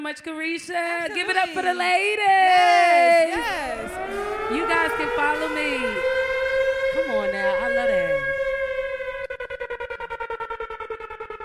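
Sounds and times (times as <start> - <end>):
speech: 0.0 - 6.2, 7.0 - 8.3
laughter: 0.7 - 4.7
siren horn sound effect: 3.2 - 11.4.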